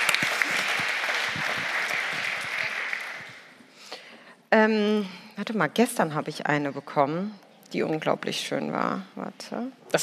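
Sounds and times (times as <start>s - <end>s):
audience applause: 0.0s - 3.6s
speech: 4.5s - 10.0s.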